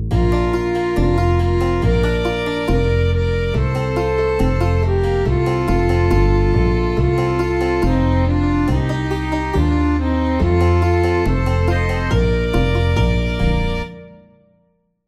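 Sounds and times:
slow country and western music: 0:00.1 - 0:14.2.

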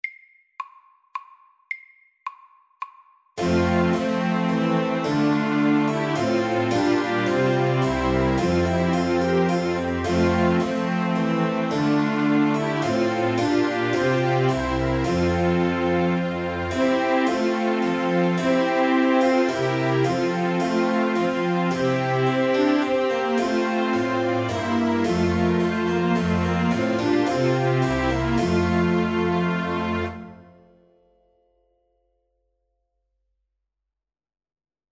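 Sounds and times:
slow minuet: 0:03.4 - 0:30.8.

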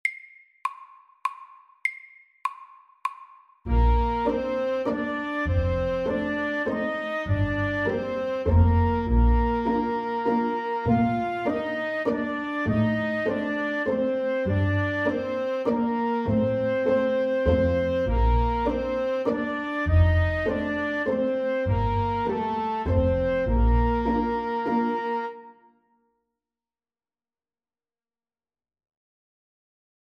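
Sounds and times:
legato waltz: 0:03.7 - 0:25.5.

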